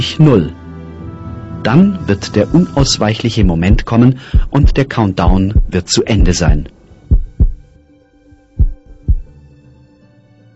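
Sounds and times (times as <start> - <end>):
speech: 0.1 - 0.6, 1.6 - 6.8
heartbeat: 3.4 - 7.7, 8.4 - 9.3
faint steady hum: 3.4 - 7.8.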